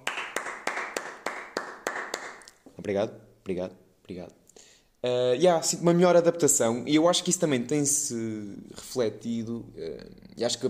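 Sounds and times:
hand clapping: 0.0 - 3.6
speech: 2.8 - 10.6.

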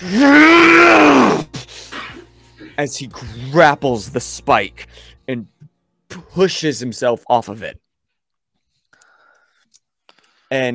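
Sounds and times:
speech: 0.0 - 0.8, 2.8 - 5.5, 6.4 - 7.8, 10.5 - 10.7
person voicing an inhuman roar: 0.0 - 1.5
short breathy sound: 8.9 - 10.5.

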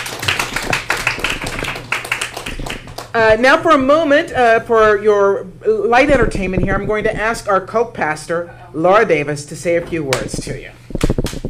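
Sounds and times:
audience round of applause: 0.0 - 3.2
speech: 3.1 - 11.1.

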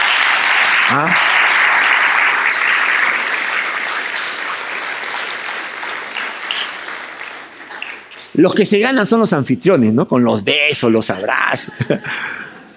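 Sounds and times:
audience applause: 0.0 - 8.7
speech: 0.9 - 1.3, 8.4 - 12.4
laughter: 11.6 - 12.7.

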